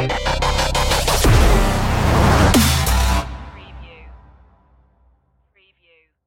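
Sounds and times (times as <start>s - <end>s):
dubstep stinger: 0.1s - 3.7s.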